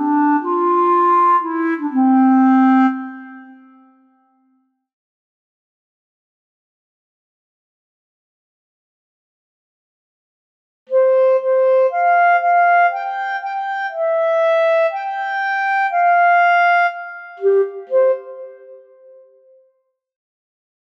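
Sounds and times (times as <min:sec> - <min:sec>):
Bb clarinet: 0:00.0 - 0:04.5, 0:10.9 - 0:19.6.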